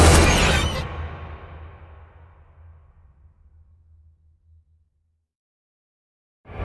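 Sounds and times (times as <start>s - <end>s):
reversed orchestral screeches: 0.1s - 0.9s.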